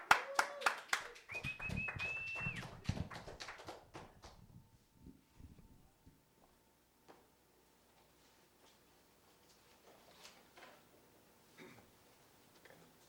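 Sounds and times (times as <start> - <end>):
audience applause welcoming a guest: 0.0 - 4.3.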